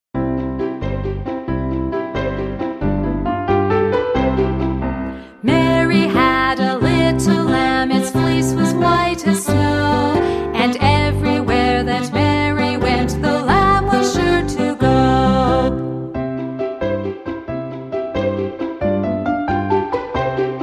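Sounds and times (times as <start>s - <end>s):
nursery rhyme song: 0.4s - 20.6s.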